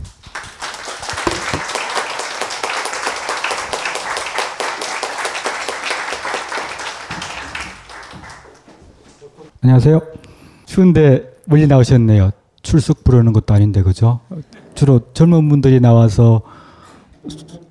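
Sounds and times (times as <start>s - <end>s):
audience applause: 0.2s - 8.7s
speech: 9.6s - 10.2s, 10.8s - 16.5s, 17.2s - 17.4s.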